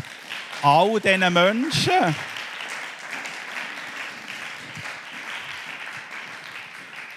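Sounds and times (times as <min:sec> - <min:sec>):
audience applause: 0:00.0 - 0:07.1
speech: 0:00.6 - 0:02.4.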